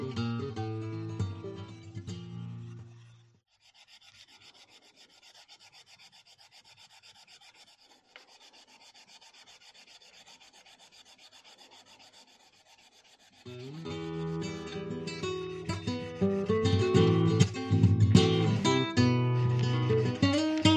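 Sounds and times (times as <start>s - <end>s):
steel wool rubbing guitar fretboard and frets: 0.0s - 3.4s, 10.9s - 20.7s.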